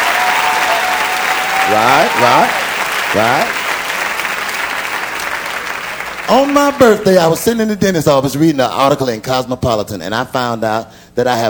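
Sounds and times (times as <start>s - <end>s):
audience applause: 0.0s - 7.7s
speech: 1.7s - 3.6s, 6.3s - 11.4s.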